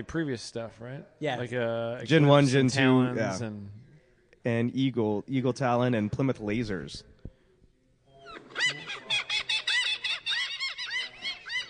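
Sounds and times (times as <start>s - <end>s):
speech: 0.0s - 3.8s, 4.4s - 7.1s
seagull sound effect, shrill squealing gull cries: 8.3s - 11.6s.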